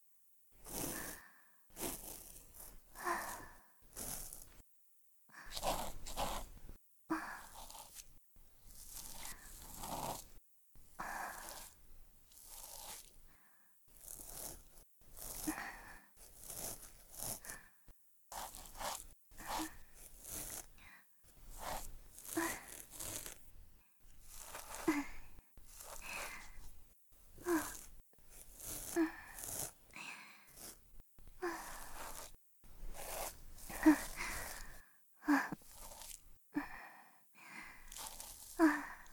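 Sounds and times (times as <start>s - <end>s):
breathing: 0.6s - 4.6s, 11.0s - 11.8s, 12.9s - 14.6s, 15.2s - 23.3s, 24.3s - 26.8s, 27.4s - 30.8s, 31.4s - 39.1s
ear cleaning sound effects: 0.6s - 4.6s, 5.4s - 13.3s, 14.0s - 17.7s, 18.3s - 36.4s, 37.7s - 39.1s.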